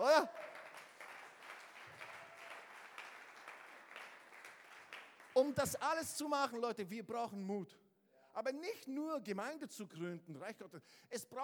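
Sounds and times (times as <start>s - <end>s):
audience applause: 0.0s - 5.8s
speech: 5.4s - 7.8s, 8.4s - 11.4s.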